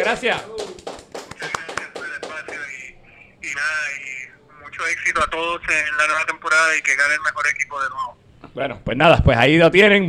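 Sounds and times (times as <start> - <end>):
applause: 0.0 - 2.8
speech: 0.1 - 0.6, 4.8 - 10.0.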